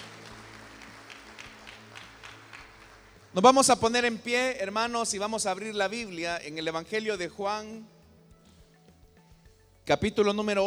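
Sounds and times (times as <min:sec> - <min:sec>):
audience applause: 0:00.0 - 0:03.5
speech: 0:03.4 - 0:08.0, 0:09.9 - 0:10.6.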